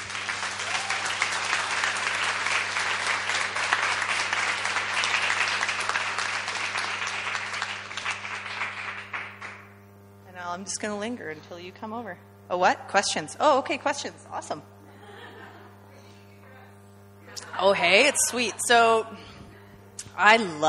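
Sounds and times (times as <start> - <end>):
audience applause: 0.0 - 9.7
speech: 10.6 - 14.8, 17.6 - 19.4, 20.2 - 20.6
laughter: 14.8 - 19.7.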